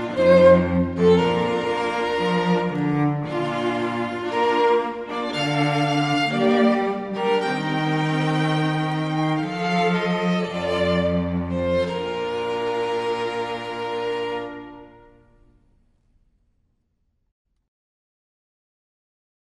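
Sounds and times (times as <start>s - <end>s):
string quartet playing a wedding march: 0.0s - 15.4s.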